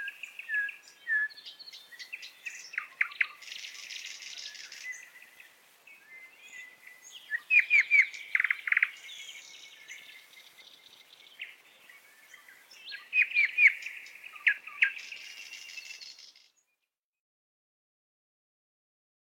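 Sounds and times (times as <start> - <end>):
nightingale song: 0.0 - 16.9.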